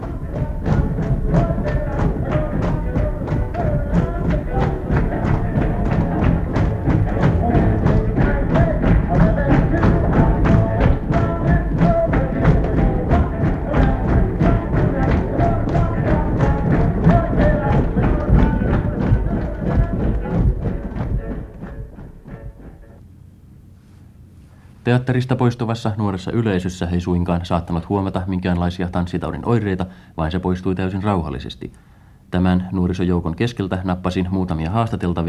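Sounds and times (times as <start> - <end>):
cinema audience stomping their feet: 0.0 - 23.0
speech: 24.9 - 35.2.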